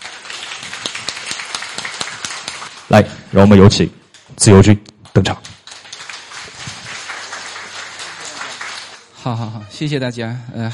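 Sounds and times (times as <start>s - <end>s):
audience applause: 0.0s - 2.9s, 5.6s - 9.3s
speech: 2.9s - 5.5s, 9.2s - 10.7s.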